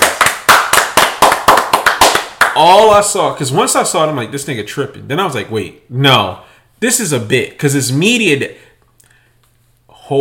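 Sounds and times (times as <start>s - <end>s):
applause: 0.0s - 2.6s
speech: 2.6s - 8.7s.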